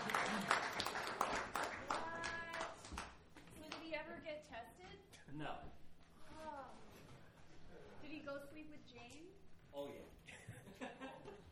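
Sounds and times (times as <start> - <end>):
audience clapping: 0.0 - 4.0
speech: 5.4 - 5.8, 8.2 - 11.4.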